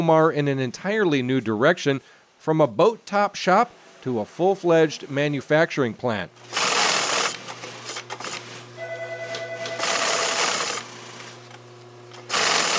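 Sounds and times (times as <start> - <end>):
speech: 0.0 - 6.6
industrial sewing machine stitching bag seams: 6.4 - 8.6, 9.2 - 12.7.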